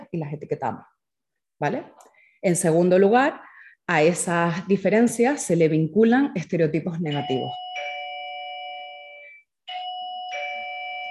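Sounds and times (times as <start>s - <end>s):
speech: 0.1s - 1.0s, 1.6s - 7.6s
electronic doorbell chiming: 7.1s - 11.0s.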